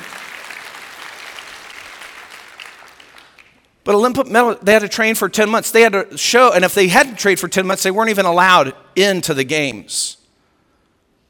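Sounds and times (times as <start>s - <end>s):
audience clapping for an Olympic medal winner: 0.0s - 3.8s
speech: 3.9s - 10.2s.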